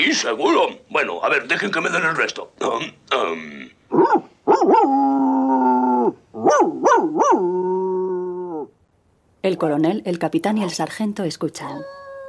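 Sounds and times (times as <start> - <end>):
speech: 0.0 - 5.3, 9.4 - 12.0
dog howling, whimpering and barking: 3.9 - 8.8, 11.8 - 12.2.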